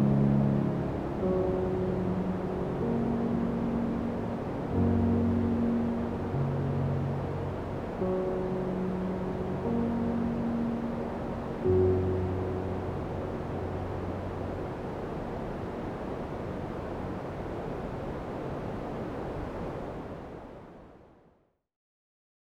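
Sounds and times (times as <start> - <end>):
white noise for sleeping: 0.0 - 21.4.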